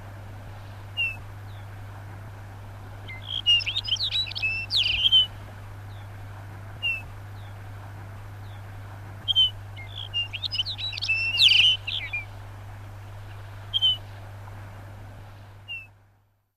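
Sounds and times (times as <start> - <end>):
Lapland bunting song: 0.9 - 1.8, 3.0 - 6.1, 6.8 - 7.6, 8.4 - 12.4, 13.1 - 14.2, 15.6 - 15.9.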